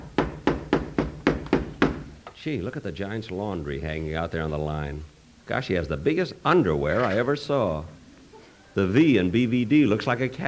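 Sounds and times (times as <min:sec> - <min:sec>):
knocking on a door: 0:00.0 - 0:02.1
speech: 0:02.4 - 0:08.0, 0:08.8 - 0:10.4.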